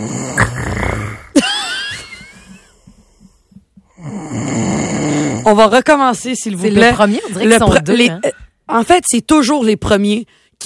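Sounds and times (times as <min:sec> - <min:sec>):
loud rough snoring: 0:00.0 - 0:01.4, 0:03.9 - 0:05.5
speech: 0:05.5 - 0:10.4.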